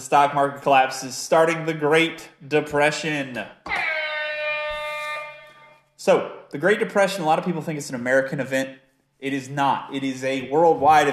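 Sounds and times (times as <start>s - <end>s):
speech: 0.0s - 3.7s, 6.0s - 11.1s
air horn: 3.7s - 5.9s.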